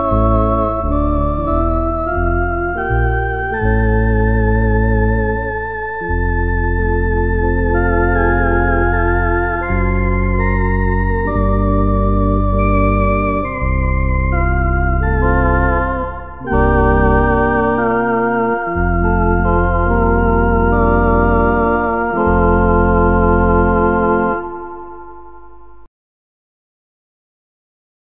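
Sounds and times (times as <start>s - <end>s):
organ playing a carol: 0.0s - 25.8s.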